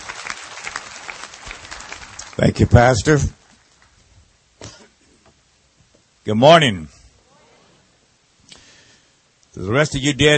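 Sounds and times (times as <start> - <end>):
crowd applause: 0.0 - 4.0
speech: 2.4 - 3.4, 6.3 - 7.0, 9.6 - 10.3.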